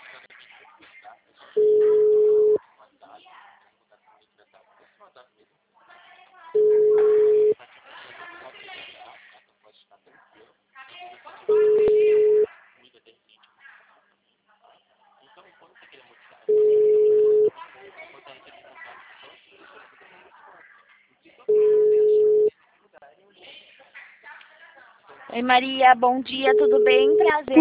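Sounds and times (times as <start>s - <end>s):
telephone busy signal after a dropped call: 1.6s - 2.6s, 6.6s - 7.6s, 11.5s - 12.5s, 16.5s - 17.5s, 21.5s - 22.5s, 26.4s - 27.5s
speech: 25.4s - 27.5s.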